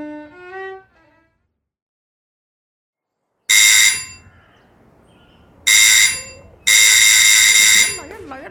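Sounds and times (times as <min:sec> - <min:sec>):
doorbell ringing as loud harsh buzzes: 0:03.5 - 0:04.2, 0:05.7 - 0:08.1
person talking: 0:08.0 - 0:08.4.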